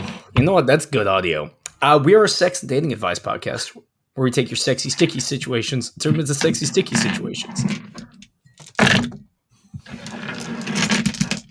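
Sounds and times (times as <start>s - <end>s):
speech: 0.4s - 8.1s
dice tumbling out of a box: 10.0s - 11.5s.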